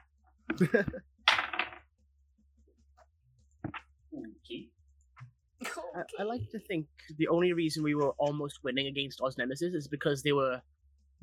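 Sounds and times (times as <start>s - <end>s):
speech: 0.6s - 1.1s, 6.0s - 11.2s
dice rolling for initiative in a tabletop game: 1.3s - 1.8s.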